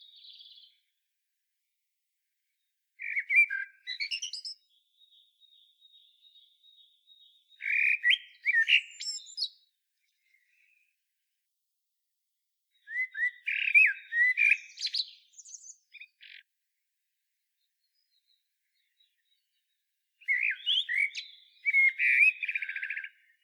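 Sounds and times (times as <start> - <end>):
Common blackbird singing: 0.0 - 0.9, 3.0 - 10.7, 12.7 - 16.4, 17.8 - 23.4.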